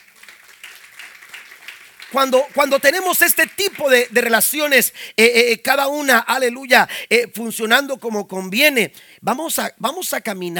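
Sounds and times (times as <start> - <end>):
crowd applauding: 0.0 - 4.9
speech: 2.1 - 10.5.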